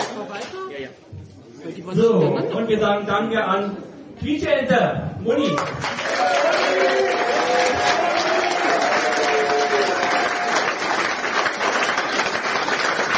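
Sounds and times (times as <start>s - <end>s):
speech: 0.3s - 7.1s
audience applause: 5.6s - 13.1s.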